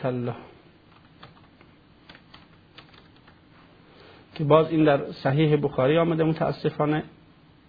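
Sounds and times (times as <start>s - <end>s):
speech: 0.0s - 0.5s, 4.4s - 7.2s
hiss: 0.0s - 7.6s
typing on a computer keyboard to run a search: 0.9s - 3.4s.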